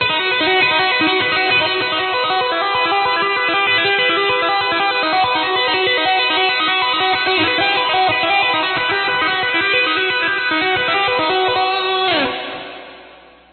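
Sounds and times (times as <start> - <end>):
guitar tapping: 0.0 - 12.9.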